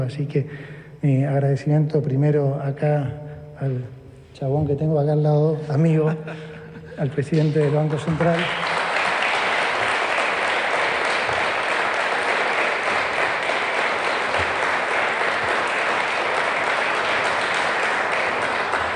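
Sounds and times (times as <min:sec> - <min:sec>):
speech: 0:00.0 - 0:08.7
audience applause: 0:07.3 - 0:18.9.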